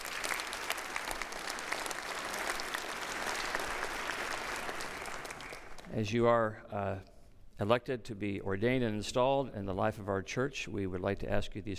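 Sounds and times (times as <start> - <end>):
crowd applause: 0.0 - 5.9
speech: 6.0 - 11.7.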